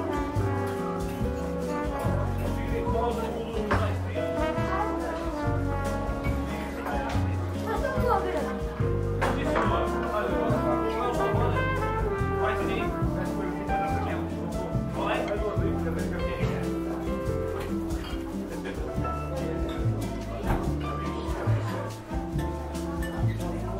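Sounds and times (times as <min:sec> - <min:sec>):
murmur of voices in a seaside cafe: 0:00.0 - 0:23.7
music with a low bass line and busy melody: 0:00.0 - 0:23.7.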